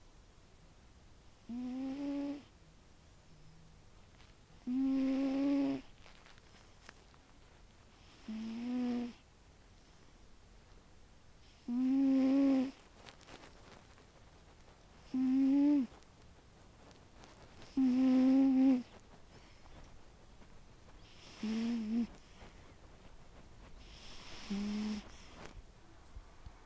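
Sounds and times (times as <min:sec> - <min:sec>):
cat snoring: 0:01.4 - 0:02.5, 0:04.6 - 0:05.9, 0:08.0 - 0:09.2, 0:11.4 - 0:12.8, 0:15.0 - 0:16.0, 0:17.6 - 0:19.6, 0:21.0 - 0:22.6, 0:23.8 - 0:25.6.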